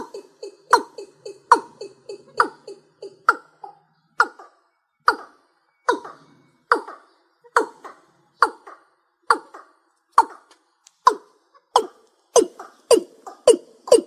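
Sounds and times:
rail calling: 0.0s - 14.0s.

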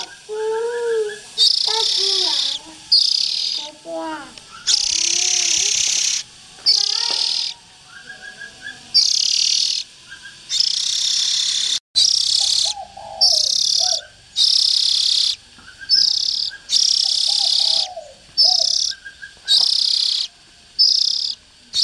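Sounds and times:
Oriental magpie-robin hissing rasps: 0.0s - 7.7s, 8.6s - 21.8s.

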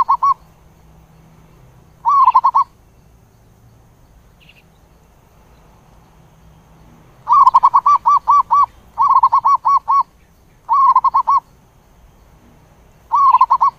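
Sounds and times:
zebra dove cooing: 0.0s - 0.4s, 2.0s - 2.7s, 7.2s - 10.1s, 10.7s - 11.5s, 13.1s - 13.7s.

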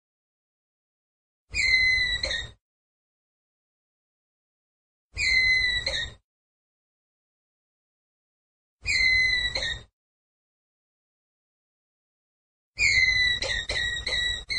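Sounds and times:
ground squirrel whistled call: 1.6s - 2.6s, 5.2s - 6.2s, 8.8s - 9.9s, 12.8s - 14.5s.

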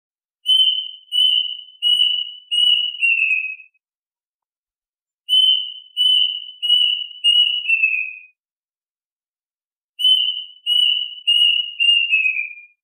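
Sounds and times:
duck whistled calls: 0.5s - 3.7s, 5.3s - 8.2s, 10.0s - 12.7s.

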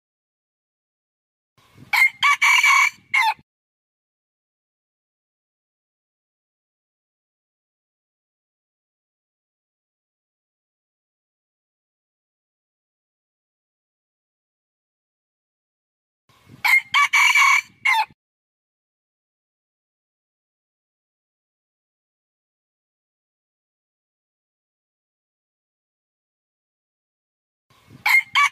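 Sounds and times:
red junglefowl crowing: 1.9s - 3.4s, 16.7s - 18.2s, 28.0s - 28.5s.

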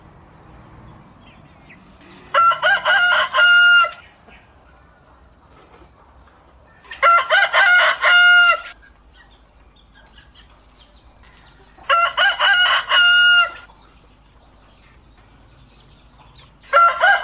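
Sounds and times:
rooster crowing: 2.2s - 4.0s, 6.8s - 8.8s, 11.3s - 13.7s, 16.6s - 17.2s.

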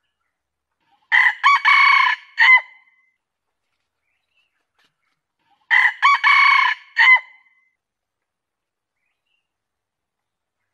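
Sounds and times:
junglefowl crowing: 1.1s - 2.7s, 5.7s - 7.4s.

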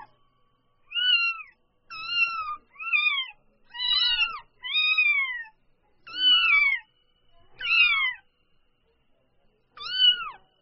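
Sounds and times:
domestic cat kitten crying: 0.9s - 5.5s, 6.1s - 6.9s, 7.6s - 8.2s, 9.8s - 10.4s.

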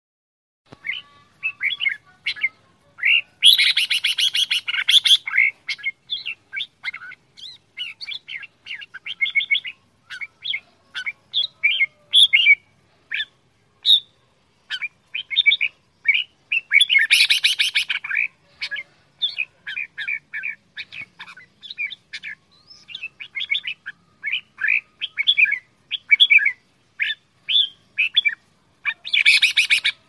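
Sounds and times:
red-whiskered bulbul singing: 0.7s - 30.0s.

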